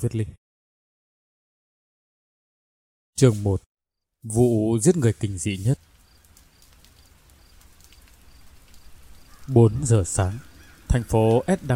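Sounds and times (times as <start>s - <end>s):
speech: 0.0s - 0.4s, 3.2s - 5.9s, 9.5s - 11.7s
dense rain hissing over a city: 4.3s - 11.7s.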